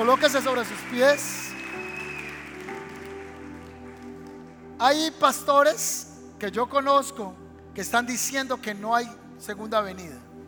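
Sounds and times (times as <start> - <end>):
speech: 0.0 - 1.5, 4.8 - 10.2
audience applause: 0.0 - 4.6.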